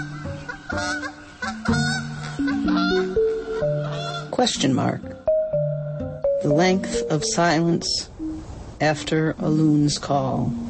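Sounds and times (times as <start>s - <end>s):
wild goose honking: 0.0s - 4.5s
speech: 0.7s - 1.8s, 4.4s - 5.1s, 6.4s - 8.1s, 8.8s - 10.6s.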